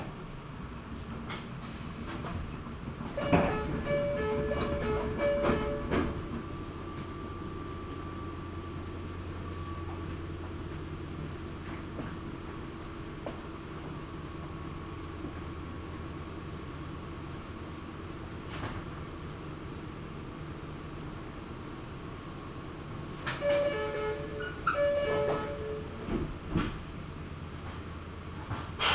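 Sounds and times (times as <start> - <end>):
Meitetsu Gamagori Line train running from Gamagori toward Kira-Yoshida: 0.0 - 28.9.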